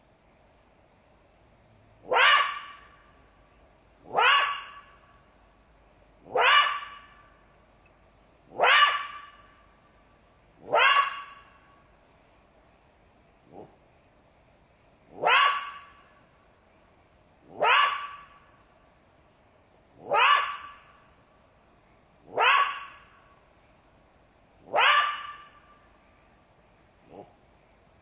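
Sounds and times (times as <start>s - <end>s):
jackal yelping: 2.0s - 3.0s, 4.1s - 5.0s, 6.3s - 7.2s, 8.5s - 9.5s, 10.6s - 11.6s, 15.1s - 16.0s, 17.4s - 18.5s, 20.0s - 20.9s, 22.3s - 23.1s, 24.6s - 25.7s.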